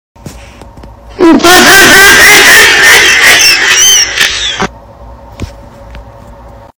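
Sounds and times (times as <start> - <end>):
laughing with boosted bass: 1.2 - 3.9.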